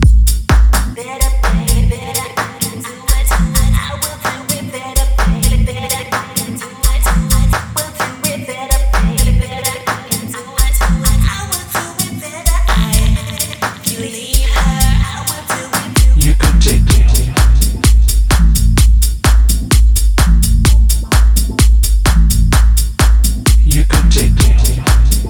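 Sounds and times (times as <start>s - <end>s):
big basses: 0.0s - 2.0s, 3.1s - 3.9s, 5.0s - 5.8s, 6.9s - 7.7s, 8.7s - 9.4s, 10.6s - 11.3s, 12.5s - 13.2s, 14.4s - 15.2s, 16.0s - 25.2s.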